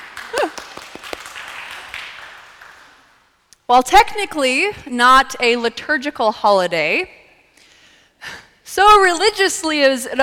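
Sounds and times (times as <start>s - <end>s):
audience applauding: 0.0s - 3.1s
speech: 3.7s - 7.2s, 8.2s - 10.2s.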